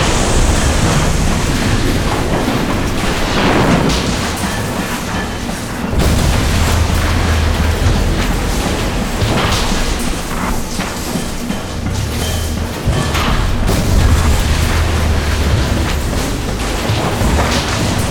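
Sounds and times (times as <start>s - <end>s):
explosion: 0.0s - 18.1s.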